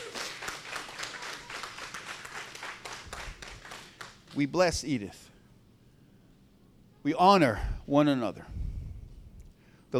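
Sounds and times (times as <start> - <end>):
crowd clapping: 0.0 - 4.5
speech: 4.4 - 5.3, 7.0 - 8.6.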